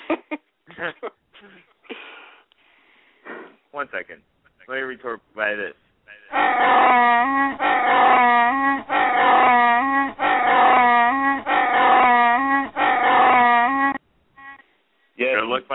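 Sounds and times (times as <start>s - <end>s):
speech: 0.1s - 1.6s, 3.8s - 8.9s
goat bleating played from soundboard: 6.3s - 14.0s.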